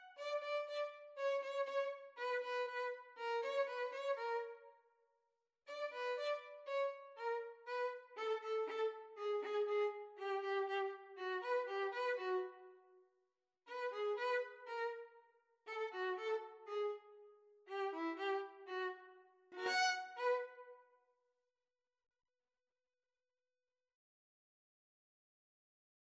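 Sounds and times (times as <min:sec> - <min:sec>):
cello: 0:00.0 - 0:04.7, 0:05.7 - 0:12.8, 0:13.7 - 0:20.8
violin: 0:00.0 - 0:04.7, 0:05.7 - 0:12.8, 0:13.7 - 0:20.8.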